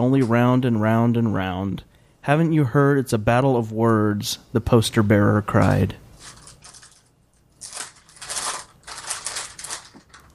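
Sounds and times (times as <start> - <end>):
speech: 0.0 - 6.0
cough drop wrapper being unwrapped: 6.1 - 10.3.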